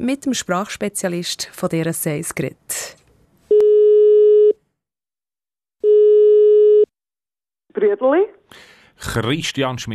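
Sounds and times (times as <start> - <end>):
speech: 0.0 - 3.0, 7.8 - 9.9
telephone ringing tone during call: 3.5 - 4.6, 5.8 - 6.9.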